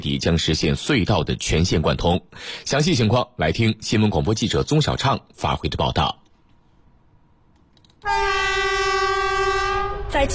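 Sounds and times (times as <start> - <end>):
speech: 0.0 - 6.2, 10.2 - 10.3
Harmony Great Wall EMU train horn echoing through a valley: 8.0 - 10.3.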